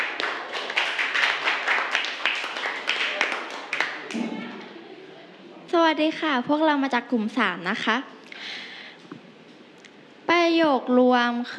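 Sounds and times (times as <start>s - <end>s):
people clapping: 0.0s - 4.7s
speech: 5.8s - 8.2s, 10.4s - 11.5s.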